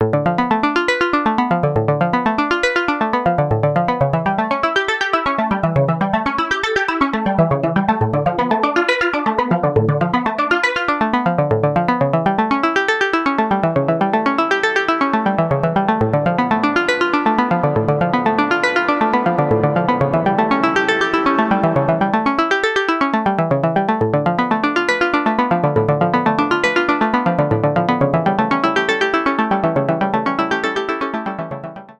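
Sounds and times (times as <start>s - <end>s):
arpeggio with chorus, reverb and delay: 0.2s - 31.9s.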